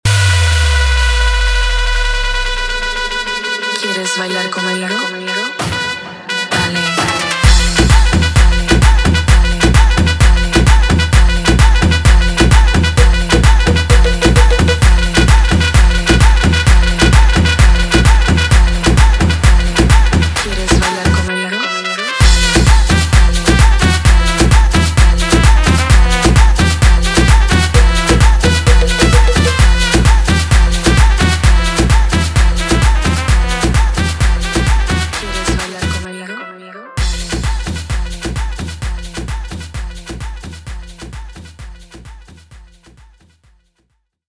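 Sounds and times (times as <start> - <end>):
guaracha remix music: 0.0 - 42.8.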